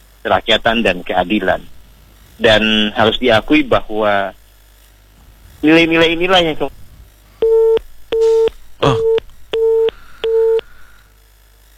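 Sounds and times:
speech: 0.2s - 1.7s, 2.4s - 4.4s, 5.6s - 6.8s
telephone busy tone after a dropped phone call: 7.4s - 10.7s.

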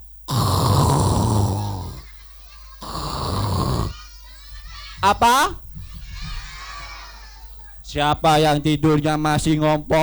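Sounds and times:
voice imitating snoring of a sleeping monkey: 0.3s - 2.1s, 2.8s - 4.0s
laughter: 1.3s - 8.7s
speech: 5.0s - 5.6s, 7.9s - 10.0s.

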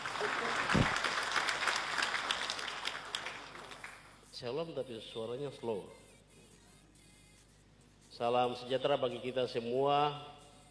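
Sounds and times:
audience applause: 0.0s - 4.1s
speech: 4.4s - 6.0s, 8.2s - 10.4s.

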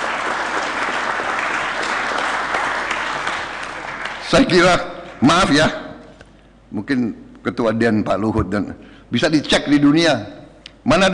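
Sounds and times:
audience applause: 0.0s - 4.5s
speech: 4.3s - 5.8s, 6.7s - 11.1s.

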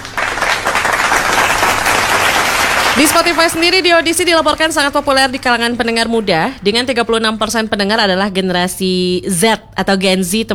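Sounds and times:
audience applause: 0.0s - 6.4s
speech: 3.0s - 10.5s.

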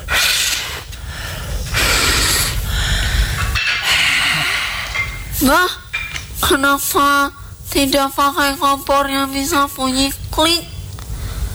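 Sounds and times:
person blowing on a fire: 0.0s - 5.1s
speech: 5.4s - 5.8s, 6.5s - 10.7s.

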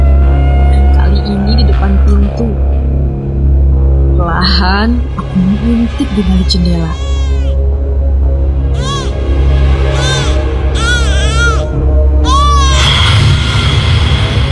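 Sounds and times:
low rumbling background: 0.0s - 14.4s
speech: 4.7s - 7.2s
newborn baby crying: 6.8s - 7.6s, 8.8s - 9.2s, 9.9s - 13.8s.

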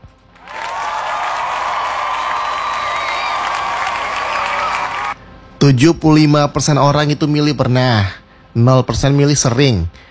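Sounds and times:
applause: 0.3s - 5.2s
speech: 5.6s - 10.1s.

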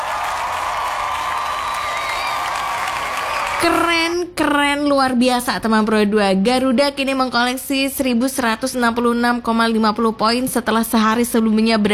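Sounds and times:
audience applause and cheering: 0.0s - 3.8s
speech: 3.6s - 11.9s.

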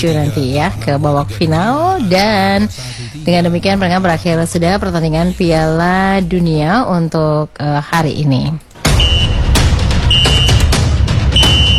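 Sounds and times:
speech: 0.0s - 8.7s
referee's final whistle blasts: 8.8s - 11.7s.

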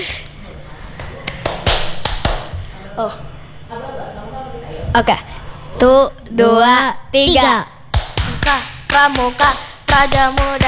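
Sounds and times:
low murmur: 0.0s - 8.7s
Scout rhythmic hand-clapping pattern: 1.0s - 2.5s, 7.4s - 10.6s
speech: 3.0s - 7.7s, 8.4s - 10.6s.

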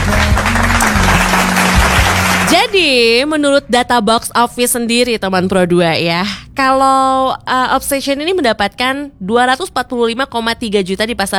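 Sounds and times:
applause sound effect: 0.0s - 2.8s
speech: 2.7s - 11.3s.

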